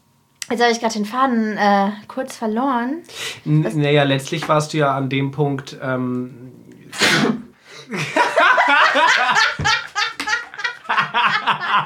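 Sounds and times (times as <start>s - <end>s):
speech: 0.5s - 6.6s, 7.9s - 9.8s, 11.1s - 11.8s
person sneezing: 6.9s - 7.9s
people laughing and chuckling: 7.9s - 11.8s.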